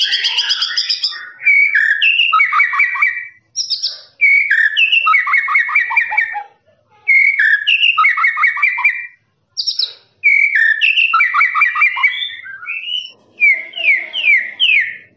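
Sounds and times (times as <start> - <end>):
lovebird chattering song of quick harsh squeaks: 0.0 - 6.5, 7.1 - 15.1.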